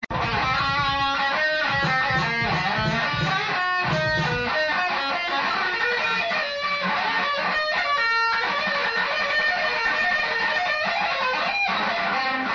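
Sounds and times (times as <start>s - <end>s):
guitar practice: 0.0s - 12.5s.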